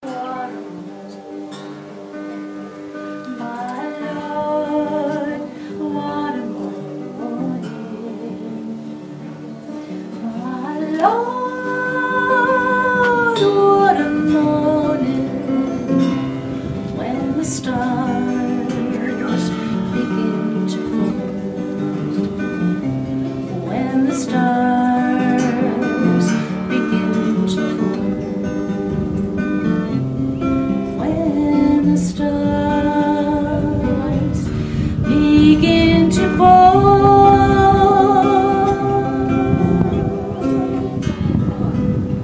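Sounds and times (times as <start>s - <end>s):
woman singing: 0.0s - 28.2s, 28.8s - 42.1s.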